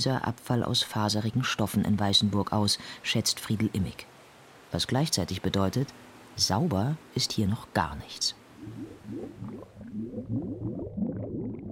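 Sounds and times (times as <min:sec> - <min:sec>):
speech: 0:00.0 - 0:04.1, 0:04.7 - 0:10.5
wastewater bubbling and churning in a sewage plant grit chamber: 0:08.4 - 0:11.7.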